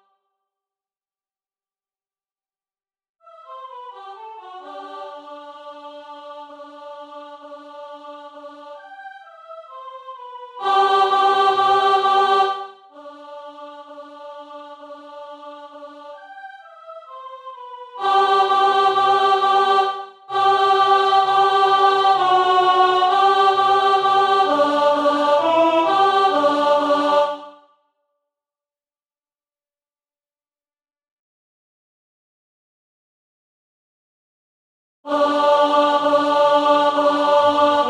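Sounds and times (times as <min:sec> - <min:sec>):
allegro music piece: 0:03.2 - 0:27.6, 0:35.1 - 0:37.8.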